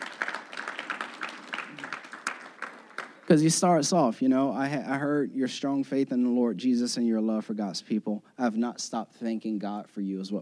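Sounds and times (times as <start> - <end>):
audience applause: 0.0 - 3.5
speech: 3.3 - 10.4.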